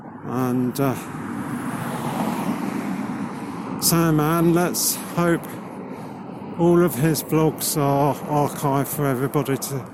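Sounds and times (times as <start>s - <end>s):
road traffic rumble: 0.0s - 9.9s
speech: 0.2s - 1.3s, 3.8s - 5.6s, 6.6s - 9.9s.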